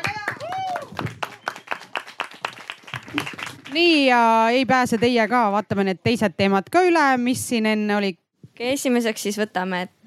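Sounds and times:
small group applauding: 0.0 - 4.2
person whistling or cheering: 0.4 - 1.8
speech: 3.1 - 10.0.

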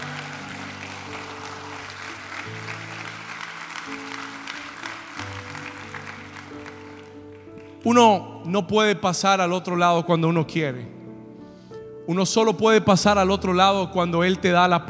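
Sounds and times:
audience applauding loudly: 0.0 - 8.0
speech: 7.8 - 11.0, 12.1 - 14.8.

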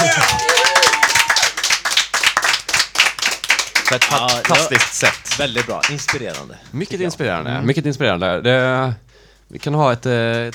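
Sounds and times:
applause from people in the studio: 0.0 - 6.5
speech: 3.9 - 10.5.

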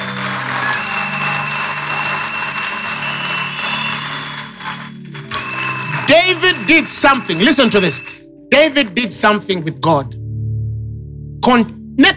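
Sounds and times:
audience clapping: 0.0 - 8.2
low sustained musical drone: 0.0 - 11.4
speech: 6.1 - 10.2, 11.4 - 12.1.

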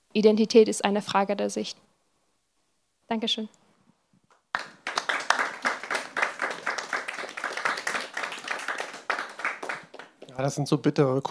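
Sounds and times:
speech: 0.2 - 1.9, 3.1 - 3.6, 10.4 - 11.2
sparse applause from a small group: 4.5 - 10.6.

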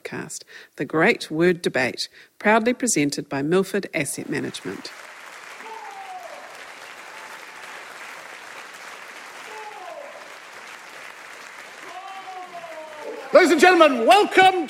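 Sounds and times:
speech: 0.1 - 5.1, 13.4 - 14.6
large audience applause: 4.5 - 14.6
whoops and raised voices: 5.6 - 7.4, 9.4 - 10.4, 11.8 - 13.4.

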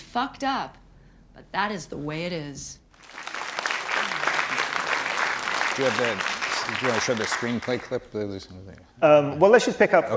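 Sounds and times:
speech: 0.2 - 0.8, 1.4 - 3.3, 5.8 - 10.1
audience applause: 3.0 - 8.0.

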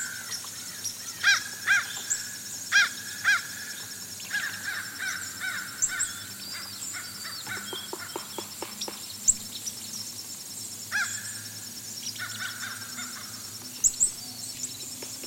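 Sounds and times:
fish crows giving nasal caws: 0.0 - 8.4, 10.9 - 11.5, 12.2 - 13.5
high insect buzz: 0.0 - 15.2
sharp taps: 7.4 - 9.1.

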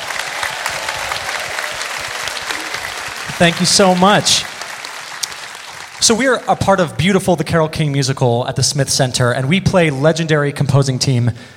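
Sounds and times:
audience applause welcoming two performers onto a live show: 0.0 - 7.0
speech: 3.4 - 4.5, 6.0 - 11.5.

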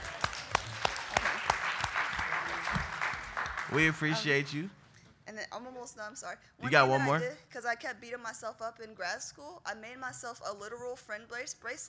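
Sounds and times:
audience round of applause: 0.0 - 4.4
speech: 3.7 - 4.8, 5.6 - 11.8.

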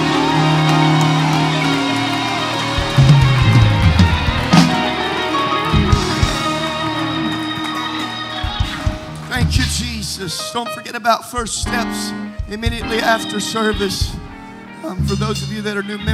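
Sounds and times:
people shouting: 0.0 - 8.4
people clapping: 0.0 - 10.5
speech: 10.2 - 16.1.

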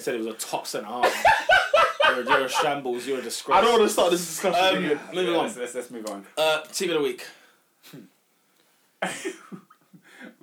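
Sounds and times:
speech: 0.0 - 8.1, 9.0 - 9.5
laughter: 1.0 - 5.5
heavy breathing: 10.0 - 10.4.

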